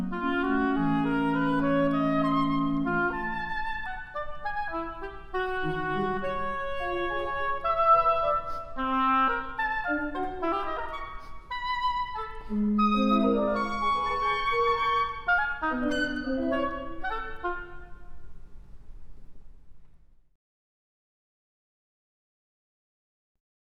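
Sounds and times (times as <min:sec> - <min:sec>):
oboe playing a scherzo: 0:00.0 - 0:18.2.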